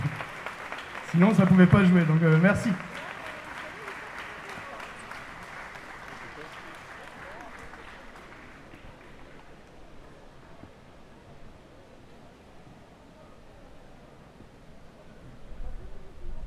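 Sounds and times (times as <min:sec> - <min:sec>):
audience applause: 0:00.0 - 0:10.3
speech: 0:01.1 - 0:02.9.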